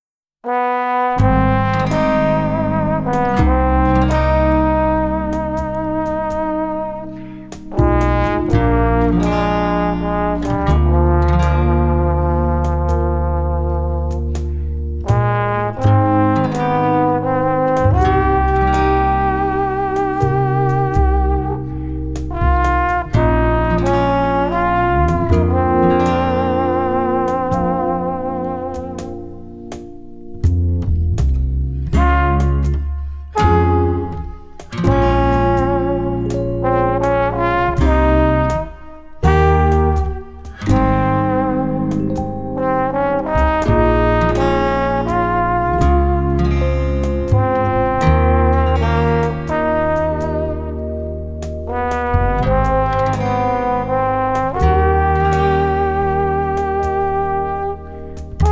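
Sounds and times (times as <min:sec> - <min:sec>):
trombone: 0:00.4 - 0:58.5.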